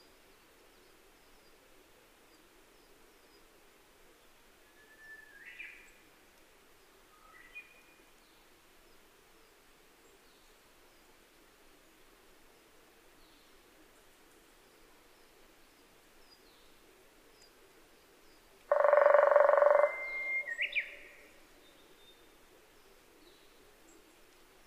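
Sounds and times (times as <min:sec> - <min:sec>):
Kera sp mole cricket: 0:18.7 - 0:20.0.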